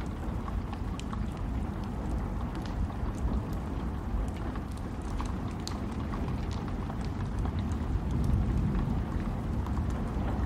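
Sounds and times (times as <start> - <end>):
steady rain: 0.0 - 10.4.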